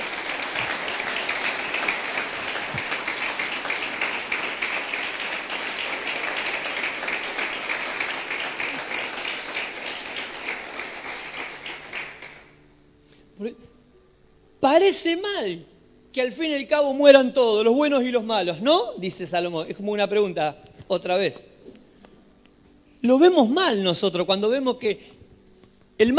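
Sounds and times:
audience applause: 0.0 - 12.6
speech: 14.7 - 21.5, 23.0 - 25.1, 26.0 - 26.1.

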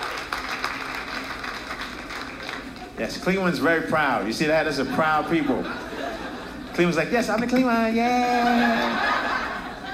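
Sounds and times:
audience clapping: 0.0 - 3.0
speech: 3.0 - 5.8, 6.8 - 9.1
laughter: 4.5 - 7.1, 8.1 - 9.9.

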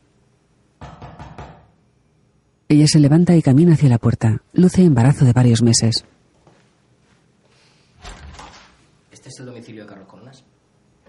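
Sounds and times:
knocks on a wall: 0.8 - 1.7
speech: 2.7 - 6.2, 9.4 - 10.5.

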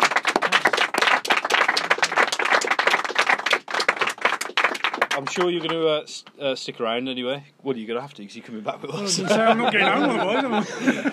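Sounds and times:
audience round of applause: 0.0 - 5.9
speech: 5.2 - 11.1
laughter: 8.8 - 11.1.

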